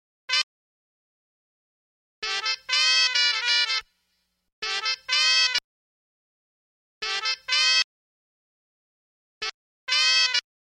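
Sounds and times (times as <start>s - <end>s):
horn: 2.2s - 3.9s, 4.6s - 5.6s, 7.0s - 7.9s, 9.4s - 10.5s.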